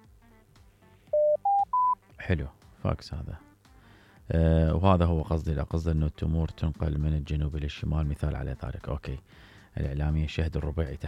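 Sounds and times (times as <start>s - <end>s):
telephone line signal tones on a radio call-in show: 1.2s - 2.0s
speech: 2.3s - 3.5s, 4.3s - 11.0s.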